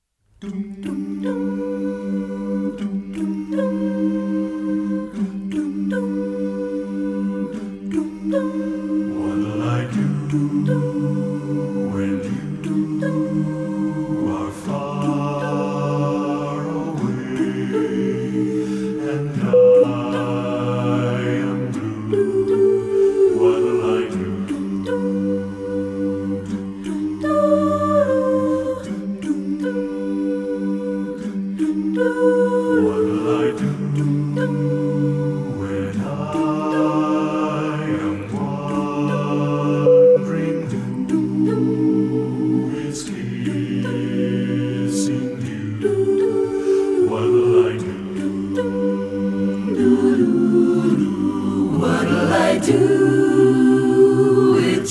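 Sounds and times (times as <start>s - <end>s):
a cappella singing: 0.0s - 54.8s.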